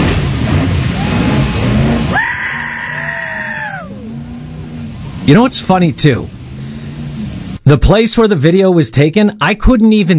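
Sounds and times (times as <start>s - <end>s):
rushing roar of a boat jumping Lundbreck Falls: 0.0s - 7.6s
speech: 5.3s - 6.4s, 7.7s - 10.1s.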